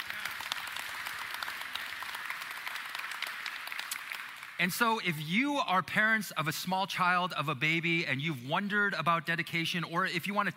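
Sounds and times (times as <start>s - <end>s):
audience applause: 0.0s - 4.7s
speech: 4.6s - 10.5s.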